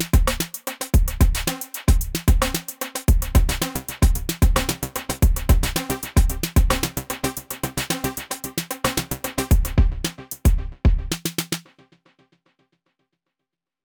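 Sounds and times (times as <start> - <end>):
electro big beat music: 0.0 - 11.6.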